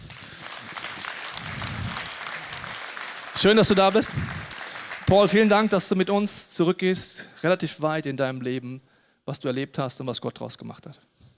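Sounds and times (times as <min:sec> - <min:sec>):
crowd applauding: 0:00.0 - 0:06.1
speech: 0:03.4 - 0:04.5, 0:05.1 - 0:11.2.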